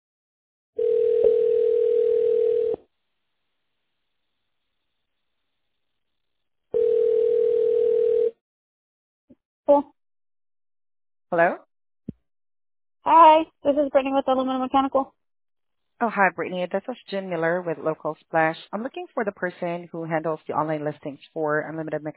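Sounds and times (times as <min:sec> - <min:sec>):
telephone line tone while call connects: 0:00.8 - 0:02.8, 0:06.8 - 0:08.4
speech: 0:09.7 - 0:10.0, 0:11.3 - 0:11.6, 0:13.0 - 0:15.2, 0:16.0 - 0:22.1.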